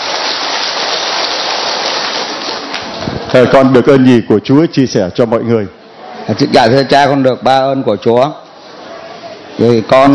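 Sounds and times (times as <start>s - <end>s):
audience applause: 0.0s - 3.4s
speech: 3.3s - 8.4s, 9.6s - 10.1s.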